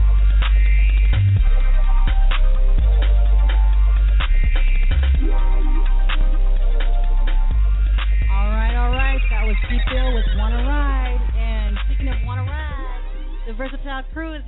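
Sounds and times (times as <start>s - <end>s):
steady low hum: 0.0s - 14.4s
telephone ringtone: 9.0s - 11.3s.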